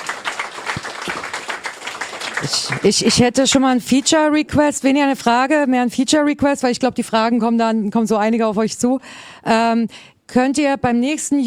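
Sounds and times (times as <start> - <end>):
audience applause after a presentation at a youth hackathon: 0.0 - 3.2
speech: 2.4 - 11.4.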